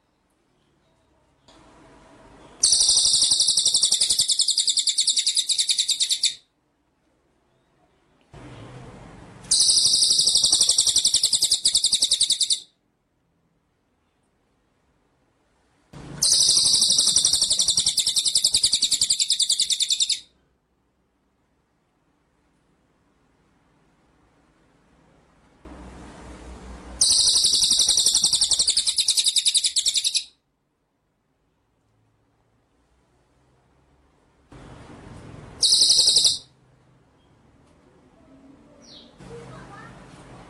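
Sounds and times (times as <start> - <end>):
White-rumped shama rattling trill: 2.5 - 6.5, 9.4 - 12.7, 16.1 - 20.3, 27.0 - 30.3, 35.6 - 36.6.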